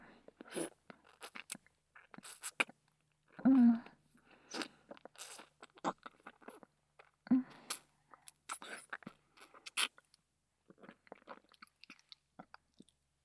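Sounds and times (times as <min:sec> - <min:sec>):
ASMR ear licking sounds: 0:00.5 - 0:02.7, 0:04.5 - 0:09.9.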